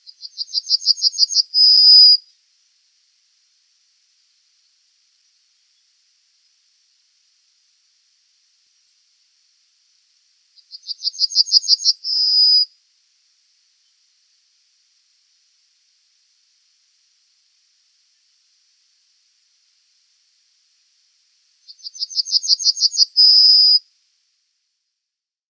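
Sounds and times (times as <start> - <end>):
bunting singing: 0.1 - 2.2, 10.6 - 12.7, 21.7 - 23.8.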